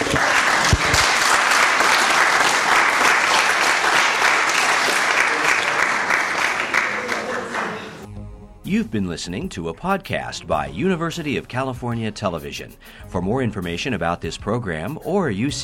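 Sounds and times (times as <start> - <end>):
audience applause: 0.0 - 8.1
speech: 8.8 - 15.6.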